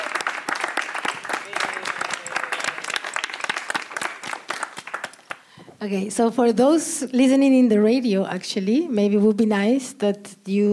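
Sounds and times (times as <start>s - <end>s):
audience applause: 0.0s - 5.6s
speech: 5.8s - 10.7s.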